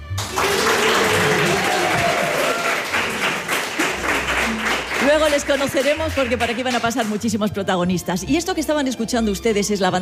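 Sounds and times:
audience applause: 0.0s - 7.1s
speech: 5.1s - 10.0s.

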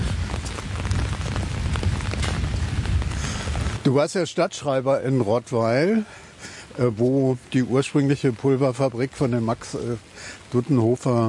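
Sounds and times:
steady rain falling outdoors: 0.0s - 11.2s
speech: 3.9s - 6.2s, 6.8s - 11.2s.

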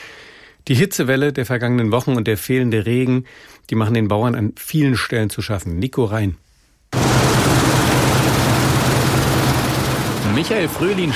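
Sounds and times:
speech: 0.7s - 6.4s, 10.4s - 11.1s
combine harvester engine running in field: 7.0s - 11.1s.

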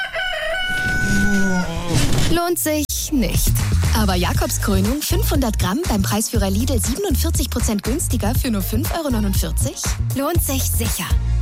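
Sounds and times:
rooster crowing: 0.0s - 1.9s
speech: 2.3s - 11.4s.

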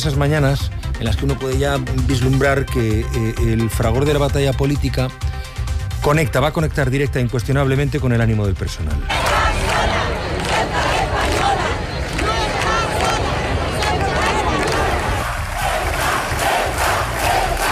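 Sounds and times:
speech: 0.0s - 10.0s
crowd shouting in unison at street protest: 9.1s - 17.6s.

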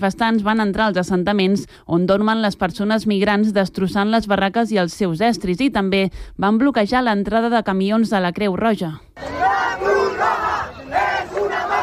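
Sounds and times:
speech: 0.0s - 9.9s
crowd of protesters shouting slogans: 9.2s - 11.8s.

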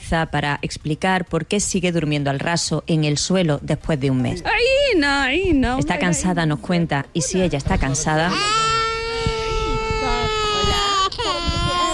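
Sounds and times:
speech: 0.1s - 8.7s
adults talking: 3.2s - 11.9s
small child of about two crying outdoors: 8.3s - 11.9s.

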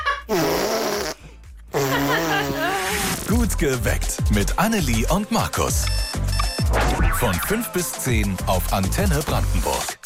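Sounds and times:
child blowing fart noise onto arm: 0.2s - 3.1s
speech: 3.5s - 6.0s, 7.2s - 10.0s.

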